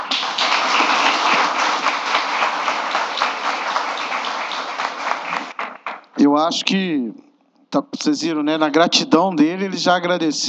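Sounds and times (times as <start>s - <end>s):
audience applause: 0.0s - 6.1s
speech: 6.4s - 10.4s.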